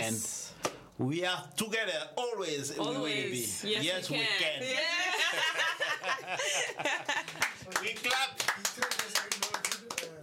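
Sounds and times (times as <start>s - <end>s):
speech: 1.0s - 9.4s
laughter: 4.8s - 7.7s
clapping: 7.2s - 10.2s.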